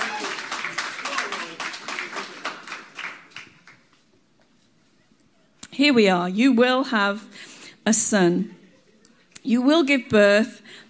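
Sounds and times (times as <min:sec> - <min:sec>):
audience applause: 0:00.0 - 0:03.9
speech: 0:05.8 - 0:07.3, 0:07.9 - 0:08.6, 0:09.4 - 0:10.8.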